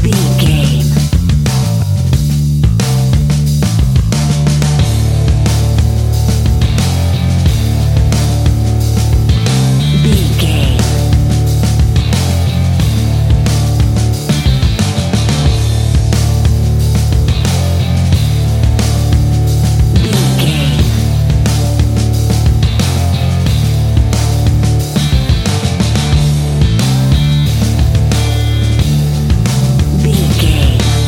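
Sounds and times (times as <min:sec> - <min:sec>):
vintage surf rock music: 0:00.0 - 0:31.0.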